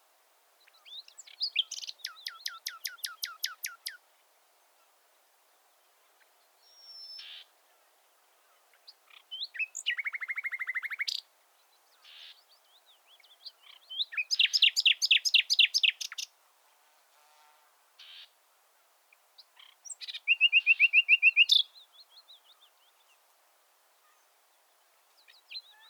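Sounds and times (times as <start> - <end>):
Common nightingale singing: 0.6 - 4.0, 8.7 - 16.3, 19.4 - 23.2, 24.0 - 25.8.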